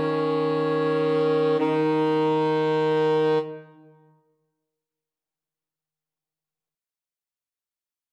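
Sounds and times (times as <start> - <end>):
two alto saxophones and a tenor saxophone playing boogie: 0.0 - 3.7.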